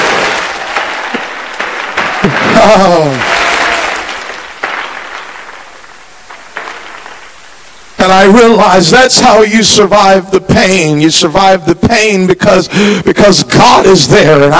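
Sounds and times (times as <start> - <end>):
people clapping hands: 0.0 - 7.0
speech: 2.2 - 3.4, 8.1 - 14.5.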